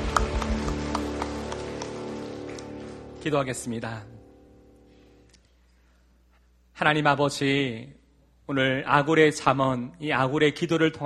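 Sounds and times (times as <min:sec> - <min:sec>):
audience applause: 0:00.0 - 0:03.5
speech: 0:03.2 - 0:04.1, 0:06.8 - 0:11.0.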